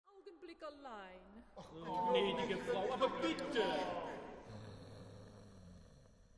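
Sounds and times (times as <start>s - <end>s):
speech: 0.5s - 4.3s
laughter: 1.6s - 4.6s
person snoring at a party: 4.4s - 6.3s.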